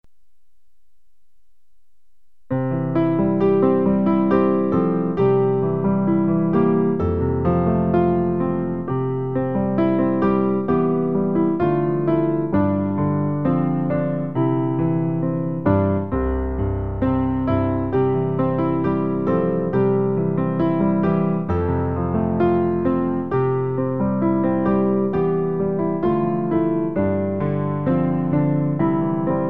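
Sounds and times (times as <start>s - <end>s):
piano: 0.0s - 29.4s.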